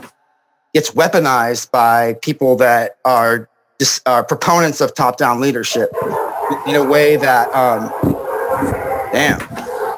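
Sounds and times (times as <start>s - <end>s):
speech: 0.7s - 8.2s, 9.1s - 9.6s
dogs barking and snarling in a fight: 5.7s - 9.9s.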